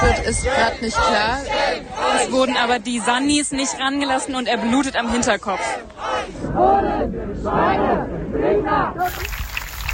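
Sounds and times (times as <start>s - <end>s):
speech: 0.2s - 9.4s
crowd applause at protest: 9.0s - 9.9s.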